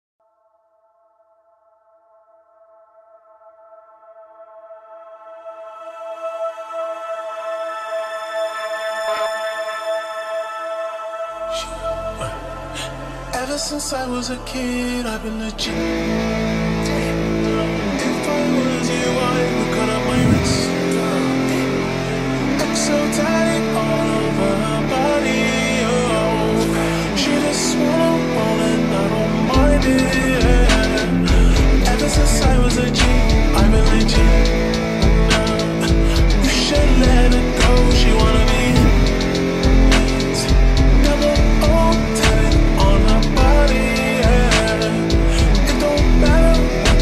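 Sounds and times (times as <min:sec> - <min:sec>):
guitar remix: 0:11.3 - 0:47.0.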